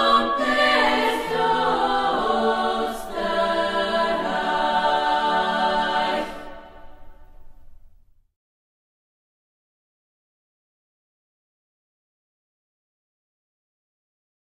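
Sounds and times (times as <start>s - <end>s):
national anthem music: 0.0s - 7.4s.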